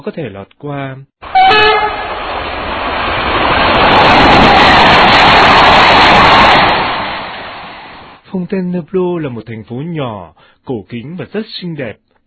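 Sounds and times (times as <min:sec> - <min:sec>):
speech: 0:00.0 - 0:02.0, 0:08.3 - 0:12.0
passenger train running fast on rails: 0:01.2 - 0:08.2.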